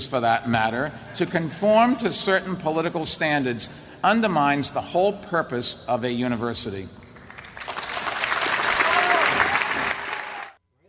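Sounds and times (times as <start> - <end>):
speech: 0.0 - 7.0
Harvard audience clapping at commencement speech: 7.2 - 10.6.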